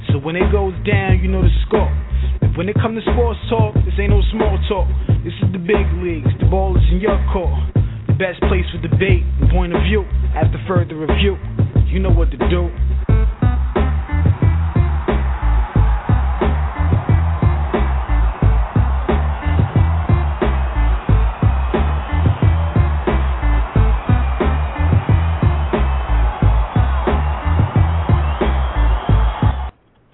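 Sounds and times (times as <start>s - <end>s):
speech: 0.2s - 12.9s
crowd noise sound effect: 11.1s - 29.8s.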